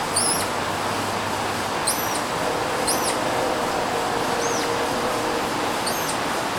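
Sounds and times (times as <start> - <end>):
flying squirrel call: 0.1 - 0.6, 1.8 - 6.3.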